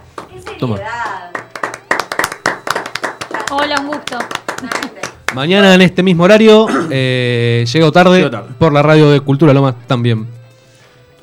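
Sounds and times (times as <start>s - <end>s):
studio applause from a few people: 0.0s - 5.6s
speech: 0.3s - 1.4s, 3.5s - 10.4s.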